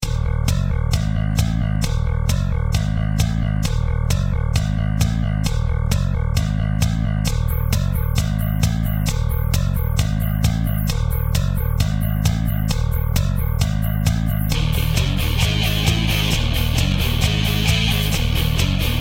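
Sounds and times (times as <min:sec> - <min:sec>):
instrumental music: 0:00.0 - 0:18.9.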